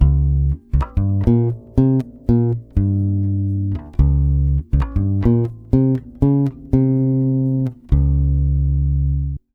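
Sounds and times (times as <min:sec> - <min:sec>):
Brazilian bossa nova music: 0:00.0 - 0:09.4.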